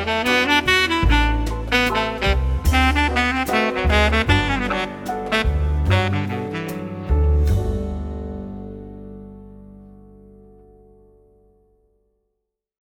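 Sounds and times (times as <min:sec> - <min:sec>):
jazz quartet playing in a hotel lounge: 0:00.0 - 0:09.8.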